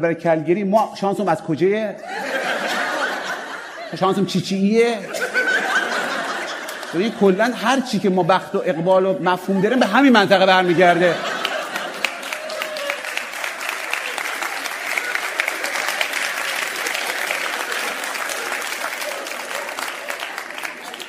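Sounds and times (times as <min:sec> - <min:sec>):
speech: 0:00.0 - 0:02.8, 0:03.9 - 0:05.4, 0:06.9 - 0:11.3
laughter: 0:02.0 - 0:21.0
crowd clapping: 0:05.2 - 0:07.1, 0:10.6 - 0:21.0.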